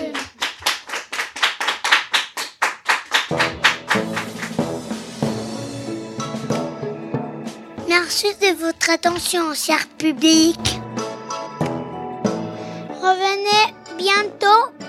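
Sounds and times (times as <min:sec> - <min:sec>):
audience clapping along in unison: 0:00.0 - 0:05.6, 0:06.2 - 0:06.8, 0:10.7 - 0:11.9
music: 0:02.8 - 0:14.8
speech: 0:08.1 - 0:10.8.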